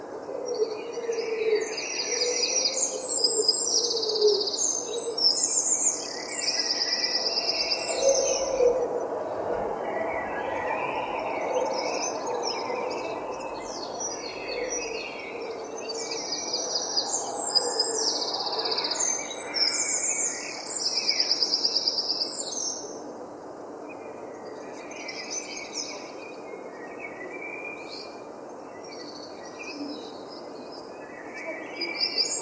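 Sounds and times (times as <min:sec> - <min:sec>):
London dawn chorus of birds: 0:00.0 - 0:32.4
lower bird chirps and warbles: 0:07.4 - 0:15.4.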